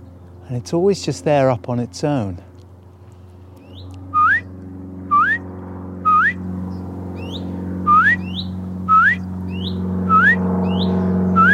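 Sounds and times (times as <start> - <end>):
low droning hum: 0.0 - 11.5
speech: 0.5 - 2.5
bird repeating bright upward-sweeping whistled call: 3.6 - 4.5, 5.1 - 5.4, 6.0 - 6.4, 7.2 - 11.5.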